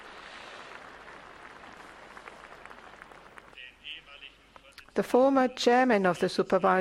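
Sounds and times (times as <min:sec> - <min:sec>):
audience applause: 0:00.0 - 0:03.6
speech: 0:05.0 - 0:06.7.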